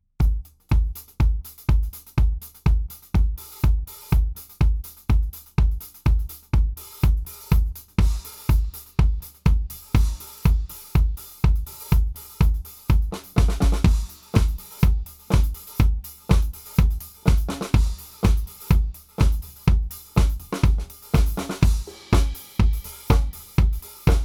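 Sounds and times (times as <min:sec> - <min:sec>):
Yamaha EAD10 dance kick drum: 0:00.0 - 0:24.2.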